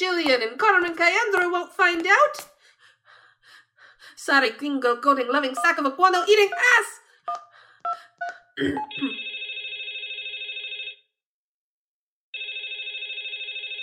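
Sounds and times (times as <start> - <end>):
speech: 0.0 - 2.5, 4.2 - 9.4
telephone ringing on a government line: 8.8 - 11.0, 12.4 - 13.8.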